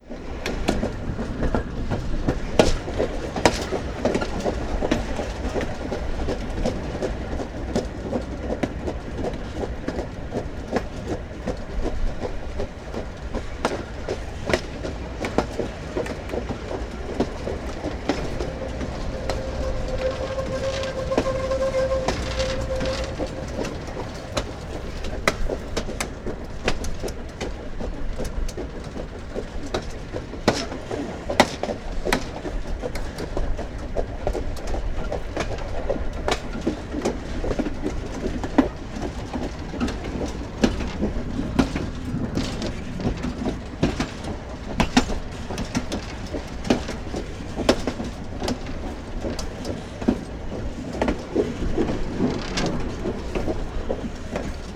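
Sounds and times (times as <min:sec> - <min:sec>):
train: 0:00.0 - 0:54.7.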